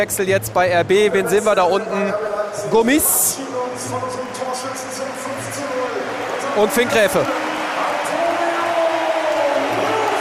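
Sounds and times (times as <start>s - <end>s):
speech: 0.0s - 5.8s, 6.6s - 7.4s
stadium crowd applause: 3.4s - 10.2s.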